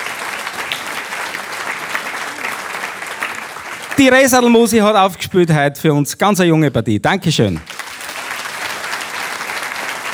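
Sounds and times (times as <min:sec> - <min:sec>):
audience applause: 0:00.0 - 0:04.7, 0:07.6 - 0:10.1
speech: 0:04.0 - 0:07.8.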